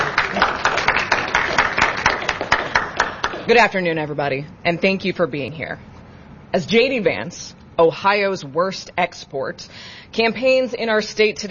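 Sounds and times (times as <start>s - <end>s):
audience applause: 0.0s - 3.5s
speech: 3.5s - 5.9s, 6.5s - 11.4s.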